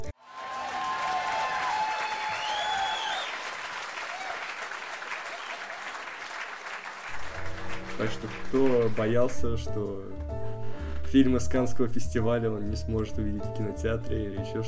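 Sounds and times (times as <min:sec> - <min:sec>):
audience applause: 0:00.0 - 0:09.8
whistles and cheers: 0:00.2 - 0:06.0
speech: 0:08.0 - 0:14.6.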